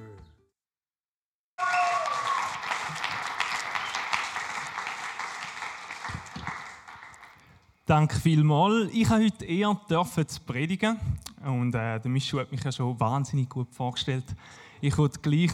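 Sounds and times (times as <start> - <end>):
audience applause: 1.6 - 7.6
speech: 7.9 - 15.4.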